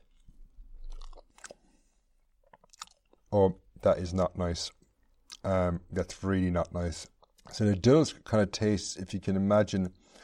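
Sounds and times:
person chewing mashed potatoes mixed with dillisk seaweed and butter: 0.0 - 3.3, 4.9 - 5.4, 7.1 - 7.5
tongue and lip clicks: 0.1 - 1.7, 2.4 - 3.3, 4.8 - 5.5, 7.1 - 7.5
speech: 3.3 - 4.8, 5.4 - 10.0.

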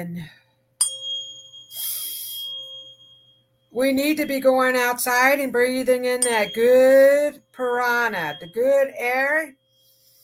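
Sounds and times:
speech: 0.0 - 0.4, 3.7 - 9.6
struck bell-like heart chakra frequency healing tone: 0.8 - 5.3, 6.2 - 10.2
airy shimmering noise: 1.4 - 3.4.

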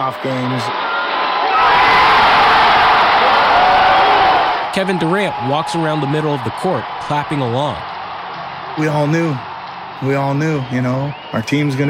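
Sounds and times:
speech: 0.0 - 0.9, 4.7 - 7.9, 8.8 - 11.8
huge arena crowd chanting and cheering: 0.0 - 11.8.

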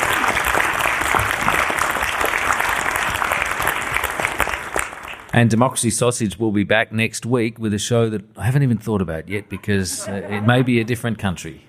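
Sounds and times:
crowd applauding: 0.0 - 5.5
speech: 5.4 - 11.6
laughter: 9.3 - 11.2.

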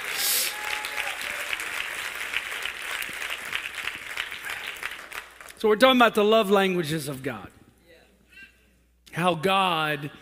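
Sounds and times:
audience clapping hands: 0.0 - 5.6
speech: 5.6 - 7.6, 9.2 - 10.2.

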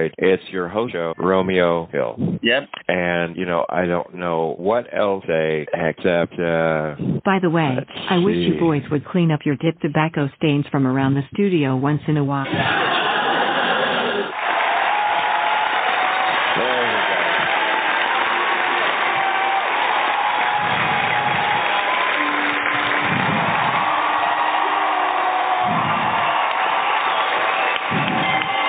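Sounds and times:
speech: 0.0 - 13.0
laughter: 8.1 - 8.8, 12.4 - 14.4, 16.6 - 17.7
applause: 13.9 - 28.6.

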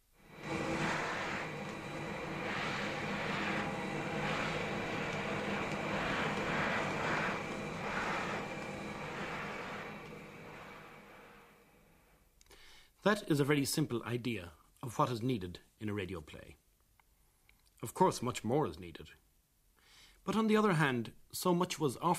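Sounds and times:
vacuum cleaner switched on and running: 0.0 - 12.2
speech: 13.0 - 16.6, 17.8 - 19.2, 20.2 - 22.1.

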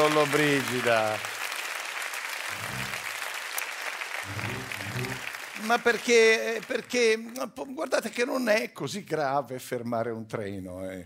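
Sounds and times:
studio audience applause: 0.0 - 7.4
speech: 0.1 - 1.4, 4.2 - 11.0.

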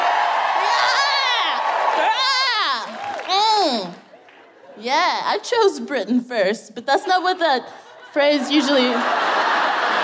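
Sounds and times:
crowd cheering: 0.0 - 4.8, 9.0 - 10.0
speech: 4.8 - 9.6
laughter: 6.9 - 10.0.

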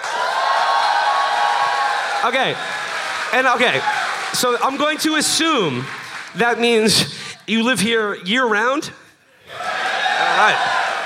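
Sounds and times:
audience applause: 0.0 - 7.3, 9.5 - 11.0
speech: 2.2 - 9.0, 10.4 - 10.8.

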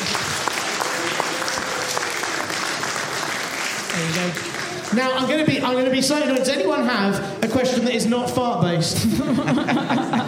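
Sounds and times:
audience applause: 0.0 - 5.4
speech: 4.0 - 10.2
laughter: 9.0 - 10.2.

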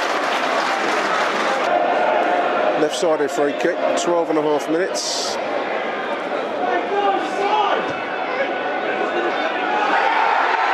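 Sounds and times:
polite applause from a stadium crowd: 0.0 - 3.6, 8.3 - 10.7
general crowd noise: 0.0 - 10.7
speech: 2.8 - 5.7.

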